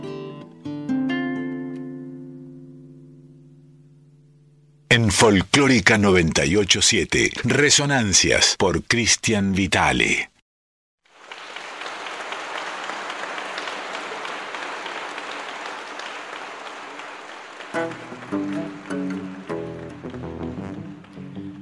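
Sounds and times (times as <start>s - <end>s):
pitched music: 0.0s - 4.9s, 17.7s - 21.5s
speech: 4.9s - 10.3s
audience applause after a song: 11.1s - 21.5s.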